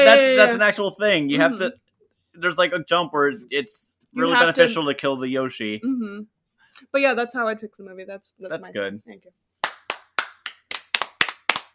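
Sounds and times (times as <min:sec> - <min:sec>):
speech: 0:00.1 - 0:01.8, 0:02.4 - 0:09.4
audience clapping: 0:09.6 - 0:11.7.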